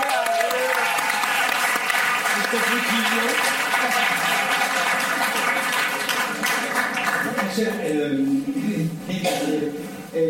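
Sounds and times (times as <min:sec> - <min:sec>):
audience applause: 0:00.0 - 0:07.7
speech: 0:02.5 - 0:04.2, 0:07.6 - 0:10.2.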